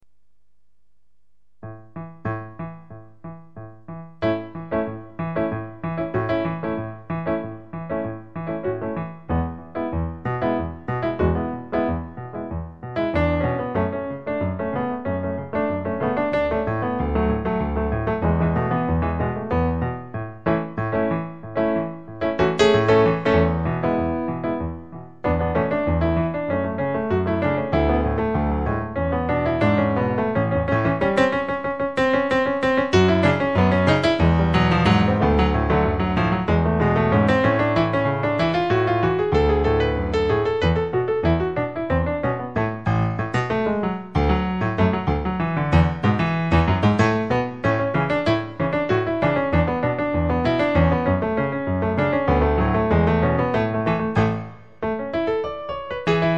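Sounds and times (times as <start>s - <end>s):
piano: 1.5s - 56.3s.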